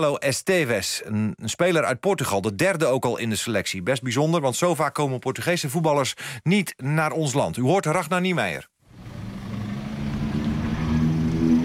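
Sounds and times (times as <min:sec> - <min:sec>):
speech: 0:00.0 - 0:08.7
cars manoeuvring in a narrow street: 0:08.9 - 0:11.6.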